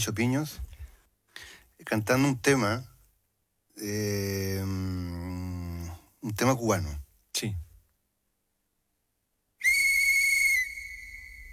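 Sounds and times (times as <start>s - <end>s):
speech: 0.0s - 0.7s, 1.8s - 2.9s, 3.8s - 5.5s, 6.2s - 7.6s
train whistle blast announcing departure for Songo and La Maya: 9.6s - 11.5s.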